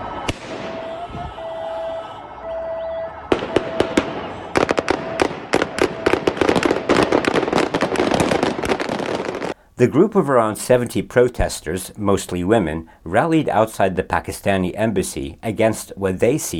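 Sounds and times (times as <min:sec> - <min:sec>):
steady high tone: 0:00.0 - 0:06.2
gunshots fired into the air: 0:00.2 - 0:01.0, 0:03.2 - 0:09.6
speech: 0:09.8 - 0:16.5.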